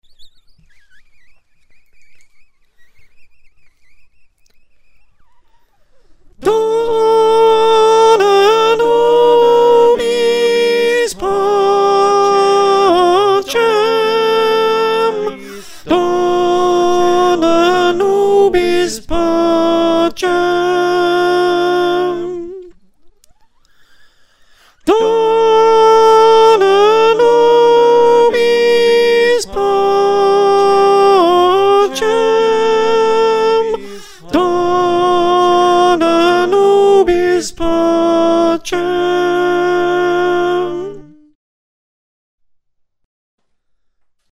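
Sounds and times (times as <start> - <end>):
choir with soprano: 6.4 - 22.7, 24.9 - 41.1.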